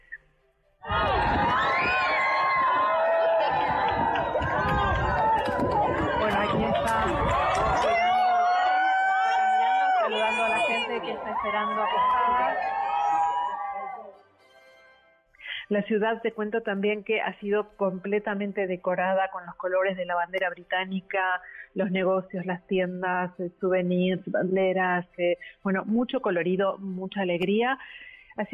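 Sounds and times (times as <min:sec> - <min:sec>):
dense street crowd cheering and shouting in greeting: 0:00.8 - 0:14.2
speech: 0:15.7 - 0:28.5.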